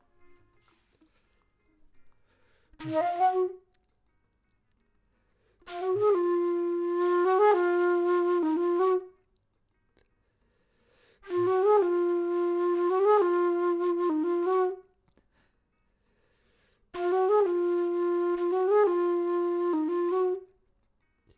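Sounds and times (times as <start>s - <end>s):
flute: 0.0s - 1.0s, 2.7s - 4.0s, 5.6s - 9.4s, 11.2s - 15.0s, 17.0s - 20.7s.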